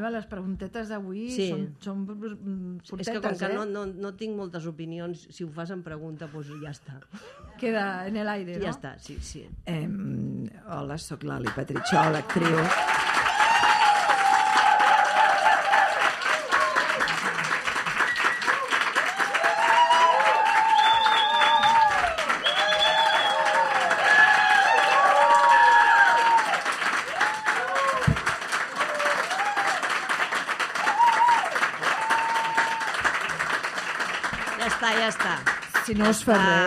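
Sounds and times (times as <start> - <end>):
speech: 0.0 - 13.1, 35.9 - 36.6
studio audience applause: 11.4 - 36.6.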